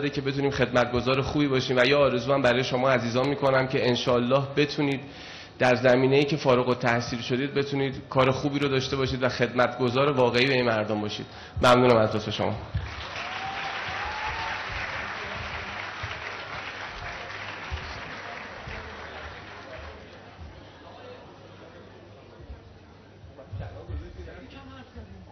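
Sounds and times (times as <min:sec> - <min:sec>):
speech: 0:00.0 - 0:12.8
audience applause at a graduation ceremony: 0:12.8 - 0:20.4.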